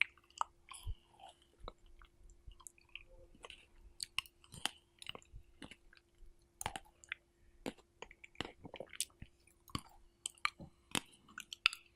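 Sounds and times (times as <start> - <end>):
faint steady hum: 0.0 - 11.9
strawberry chewing and biting: 0.0 - 11.9.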